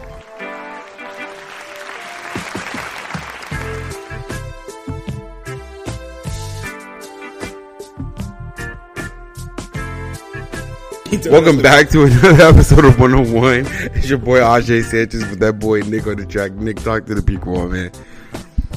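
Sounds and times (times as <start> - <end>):
audience round of applause: 0.0 - 4.5
upbeat music track with punchy beat: 2.2 - 13.9, 17.4 - 18.7
speech: 11.1 - 18.1.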